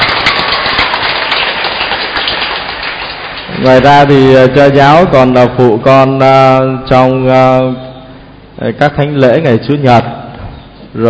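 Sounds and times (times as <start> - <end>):
crowd applause: 0.0 - 5.0
speech: 3.6 - 7.9, 8.6 - 10.2.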